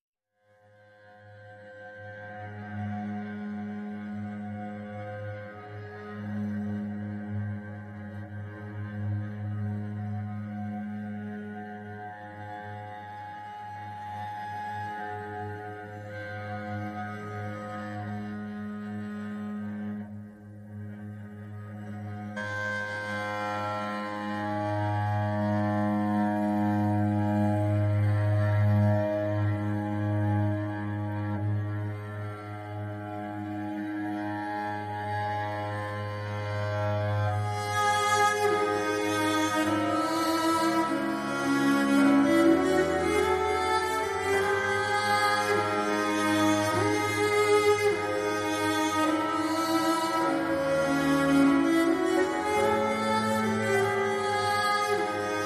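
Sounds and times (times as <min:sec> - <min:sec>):
cello: 0:00.4 - 0:55.4.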